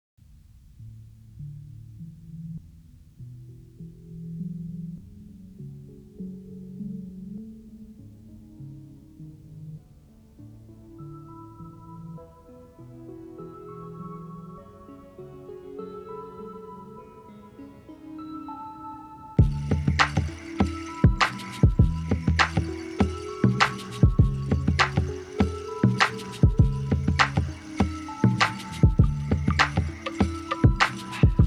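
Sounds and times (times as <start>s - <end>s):
lofi music: 17.0s - 31.4s.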